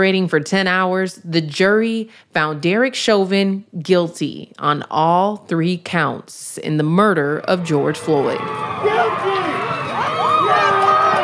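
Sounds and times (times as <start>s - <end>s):
speech: 0.0s - 9.3s
crowd cheering: 7.2s - 11.2s.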